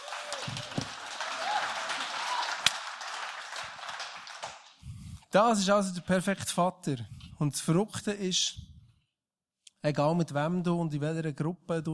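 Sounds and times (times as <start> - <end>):
faint voice or whoop: 0.0 - 2.7
audience applause: 0.0 - 4.8
speech: 5.3 - 8.6, 9.8 - 11.9.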